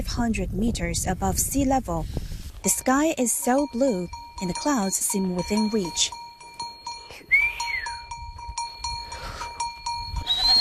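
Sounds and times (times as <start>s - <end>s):
speech: 0.1s - 6.2s
goat or sheep flock bells clanking on highland: 2.7s - 10.5s
short rising whistles: 7.2s - 8.0s, 10.2s - 10.5s.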